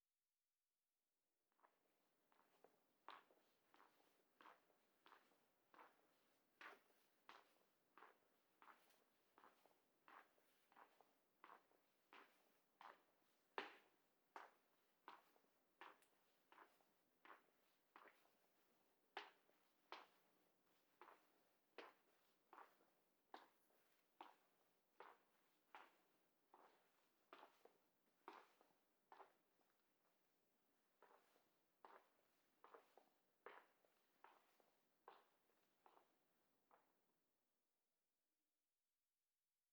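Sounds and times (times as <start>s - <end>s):
footsteps in library hallway: 2.3s - 29.6s, 30.9s - 36.9s.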